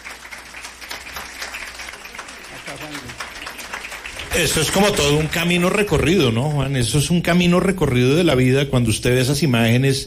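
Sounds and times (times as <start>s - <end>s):
audience applause: 0.0s - 6.4s
speech: 2.7s - 3.4s, 4.3s - 10.0s.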